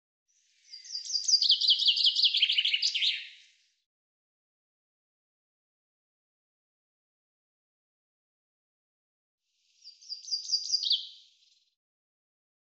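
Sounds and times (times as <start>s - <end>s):
bird delivering a rapid high-pitched chirping trill: 0.7s - 3.4s, 9.8s - 11.2s.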